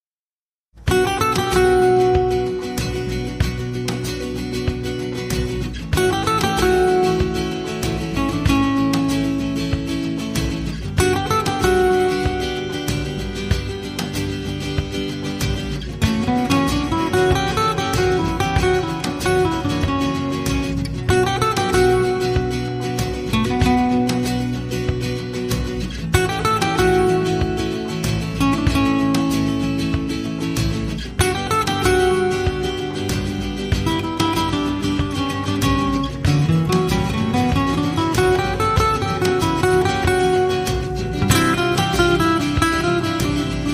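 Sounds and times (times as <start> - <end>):
Spanish guitar: 0.8 - 43.7.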